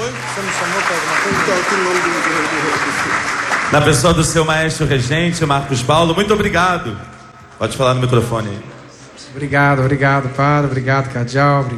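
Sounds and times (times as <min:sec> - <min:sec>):
crowd applauding the choir: 0:00.0 - 0:07.2
murmur of voices: 0:00.0 - 0:11.7
speech: 0:00.4 - 0:11.7.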